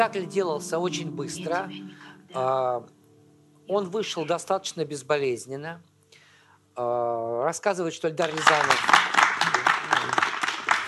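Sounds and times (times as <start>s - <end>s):
speech: 0.0s - 3.0s, 3.7s - 5.9s, 6.8s - 9.0s
crowd applauding: 8.2s - 10.8s.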